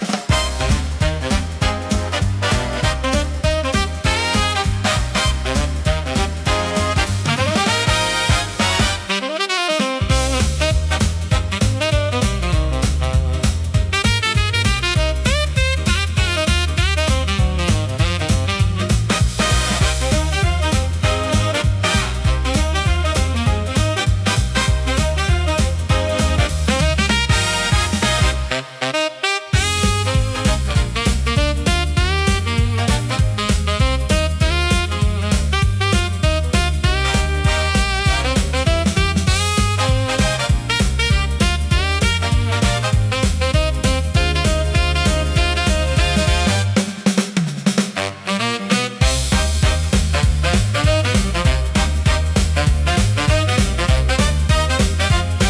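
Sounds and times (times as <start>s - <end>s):
electro swing pop music: 0.0s - 55.4s.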